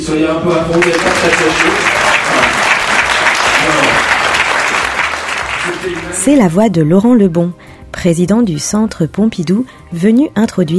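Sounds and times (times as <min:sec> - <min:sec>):
speech: 0:00.0 - 0:02.4, 0:05.8 - 0:10.7
audience clapping and cheering: 0:00.6 - 0:06.4.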